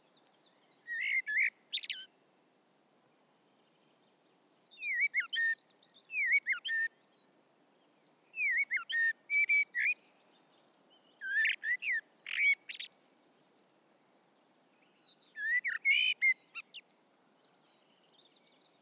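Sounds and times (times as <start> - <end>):
common blackbird singing mellow whistles: 0.5 - 2.1, 4.6 - 7.2, 8.0 - 10.1, 11.0 - 13.0, 14.9 - 17.0.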